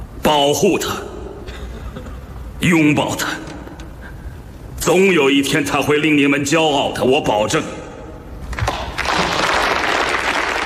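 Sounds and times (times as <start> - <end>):
speech: 0.3 - 1.1, 2.6 - 3.5, 4.8 - 7.8
crowd applauding: 8.6 - 10.6.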